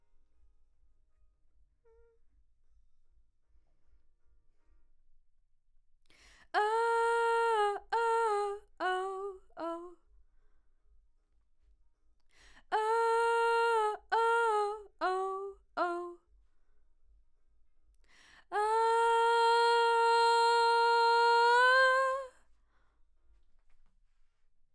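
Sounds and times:
vocal: 0:06.6 - 0:10.0, 0:12.7 - 0:16.2, 0:18.5 - 0:22.4.

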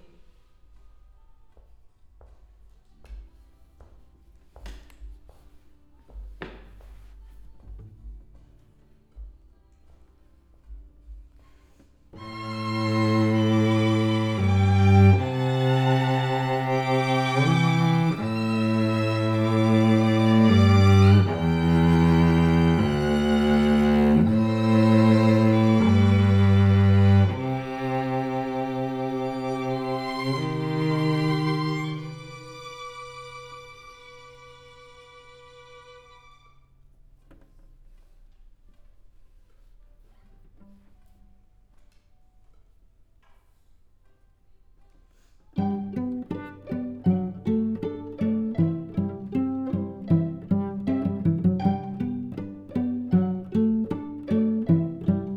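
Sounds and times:
cello: 0:10.7 - 0:38.2, 0:45.5 - 0:55.3.

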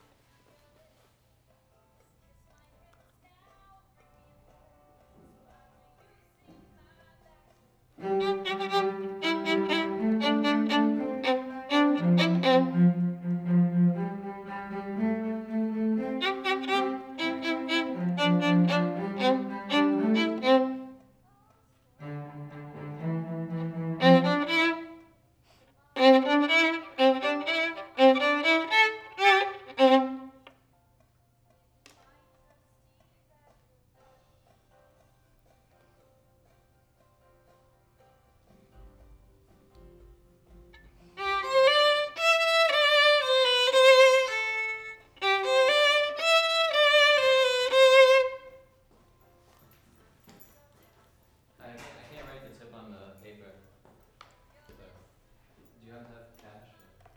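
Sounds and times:
violin: 0:08.0 - 0:21.2, 0:22.0 - 0:25.2, 0:25.9 - 0:30.6, 0:40.5 - 0:48.8.

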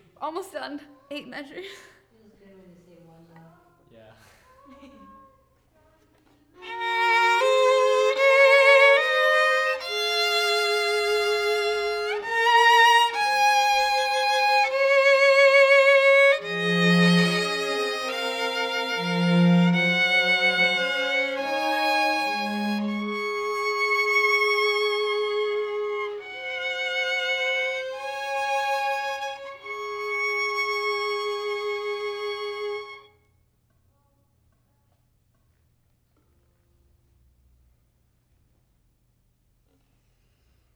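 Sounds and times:
violin: 0:06.6 - 0:33.2.

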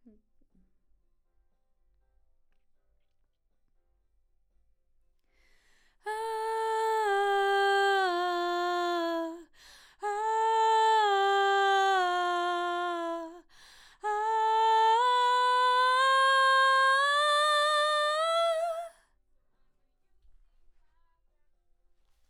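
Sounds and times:
background vocals: 0:06.0 - 0:18.9.

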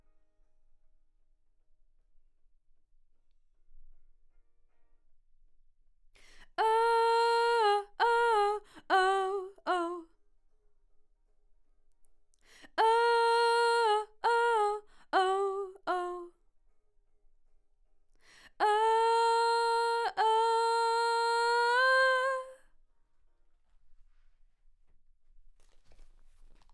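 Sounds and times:
vocal: 0:06.4 - 0:10.0, 0:12.6 - 0:16.3, 0:18.6 - 0:22.6.

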